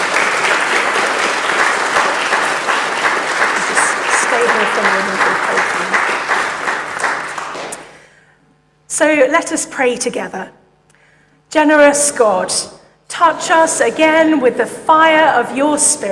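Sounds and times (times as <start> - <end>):
church congregation applauding a newly baptized and confirmed member: 0.0 - 8.0
speech: 4.6 - 5.7, 9.0 - 10.6, 11.5 - 16.0.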